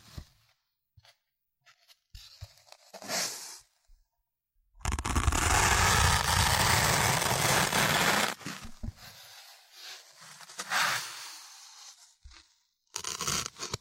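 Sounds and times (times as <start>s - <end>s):
ear cleaning massage: 4.8s - 8.4s.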